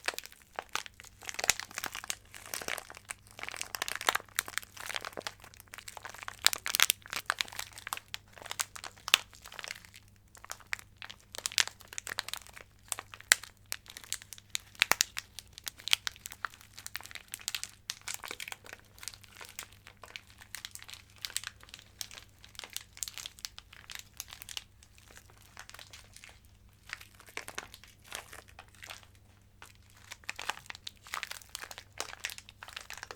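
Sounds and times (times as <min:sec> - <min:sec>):
ear-to-ear crinkling: 0:00.0 - 0:33.1.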